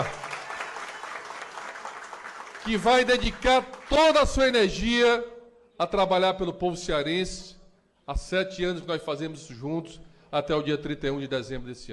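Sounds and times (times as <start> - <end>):
audience applause: 0.0 - 4.2
speech: 2.6 - 11.9.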